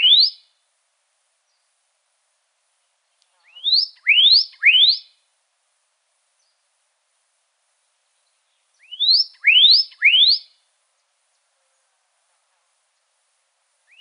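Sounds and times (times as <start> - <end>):
pyrrhuloxia rising whistled call notes in Arizona: 0.0 - 0.5, 3.4 - 5.2, 8.8 - 10.6.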